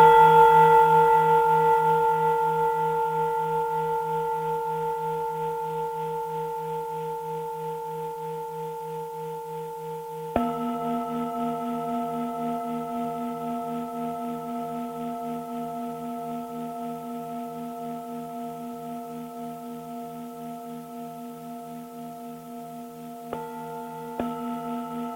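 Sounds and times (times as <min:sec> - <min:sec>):
Tibetan singing bowls ringing: 0:00.0 - 0:25.1.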